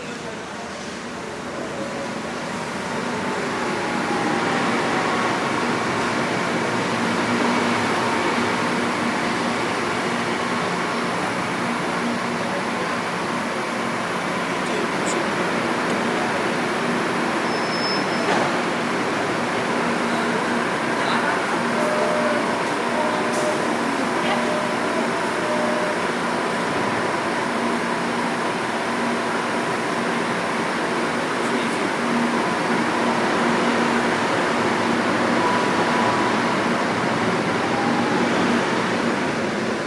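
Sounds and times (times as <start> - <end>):
Kuala Lumpur train station ambience: 0.0 - 39.8.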